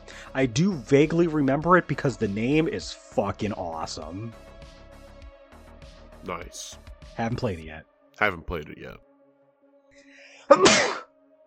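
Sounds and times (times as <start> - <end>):
speech: 0.3 - 4.5, 6.2 - 9.1, 10.5 - 11.0
person sneezing: 10.4 - 11.1.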